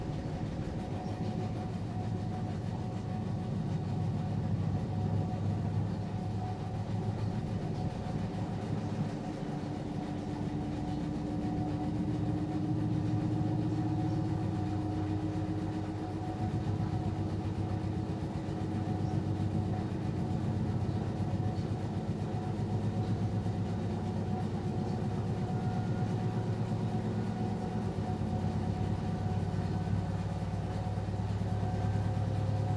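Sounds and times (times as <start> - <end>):
front load washing machine spinning: 0.0 - 32.7.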